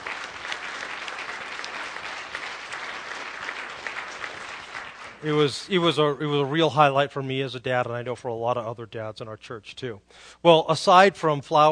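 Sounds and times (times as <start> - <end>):
loud audience applause: 0.0 - 5.5
speech: 5.2 - 11.7.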